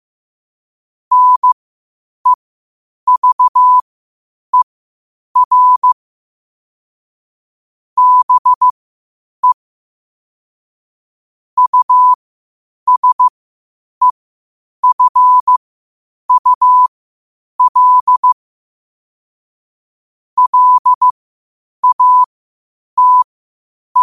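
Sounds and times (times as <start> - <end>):
morse code at 5 wpm: 1.1 - 1.6, 3.1 - 3.8, 5.4 - 6.0, 8.0 - 8.7, 11.6 - 12.2, 12.9 - 13.3, 14.8 - 15.6, 16.3 - 16.9, 17.6 - 18.4, 20.4 - 21.1, 21.8 - 22.3, 23.0 - 23.3.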